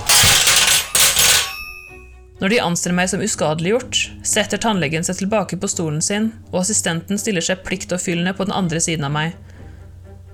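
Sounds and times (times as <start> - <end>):
tray of instruments crashing onto floor: 0.0 - 2.0
speech: 2.4 - 9.6.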